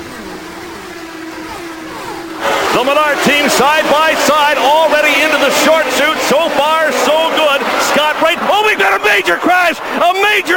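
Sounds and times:
race car engines roaring at the start of the 79th Indianapolis 500: 0.0s - 10.5s
speech: 2.8s - 10.5s.

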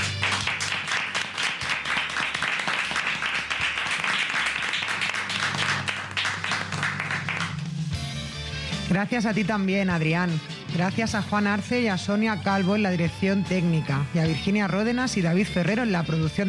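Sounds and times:
loud crowd applause: 0.0s - 7.8s
speech: 8.9s - 16.4s.

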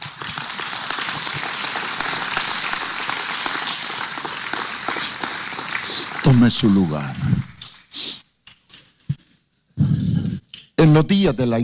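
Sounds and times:
audience applause: 0.0s - 7.6s
speech: 6.2s - 7.5s, 10.9s - 11.6s.

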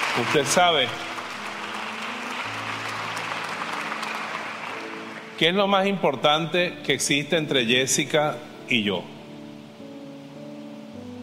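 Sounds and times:
audience applause: 0.0s - 5.5s
speech: 0.2s - 1.1s, 5.4s - 9.1s.

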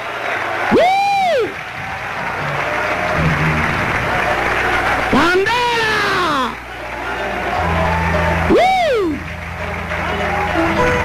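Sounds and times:
loud audience applause: 0.0s - 11.0s.

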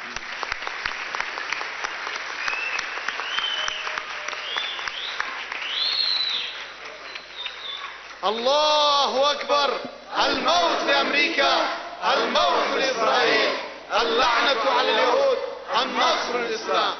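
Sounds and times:
audience applause: 0.0s - 8.4s
speech: 8.3s - 16.9s.

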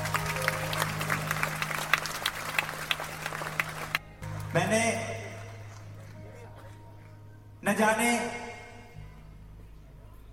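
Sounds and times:
audience applause: 0.0s - 6.7s
speech: 4.5s - 5.1s, 7.8s - 8.4s.

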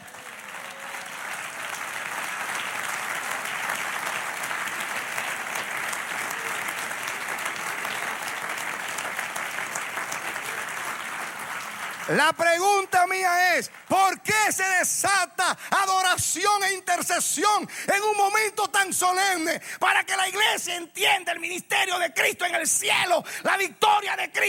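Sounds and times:
audience applause: 0.0s - 14.6s
speech: 12.1s - 24.4s.

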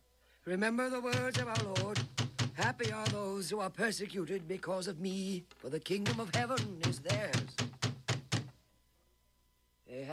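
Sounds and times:
speech: 0.4s - 7.7s, 9.9s - 10.1s
heavy knocks on a door: 1.1s - 3.4s, 6.0s - 8.6s.

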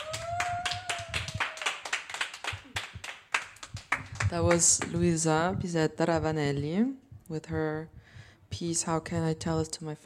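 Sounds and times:
audience applause: 0.0s - 4.2s
speech: 4.3s - 8.0s, 8.6s - 10.0s.

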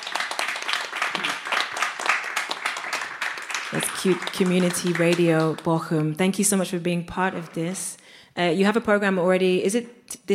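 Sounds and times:
audience applause: 0.0s - 6.1s
speech: 3.7s - 10.3s.

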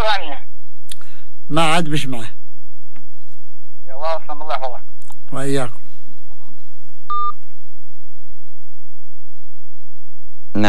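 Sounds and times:
speech: 1.5s - 2.4s, 4.1s - 5.8s
electronic telephone tone: 7.1s - 7.4s.

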